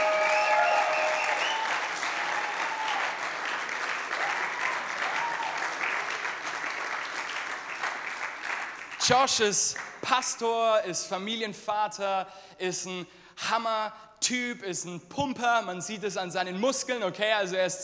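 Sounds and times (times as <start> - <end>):
whistles: 0.0 - 3.1
applause from a large audience: 0.0 - 9.2
speech: 9.1 - 17.8.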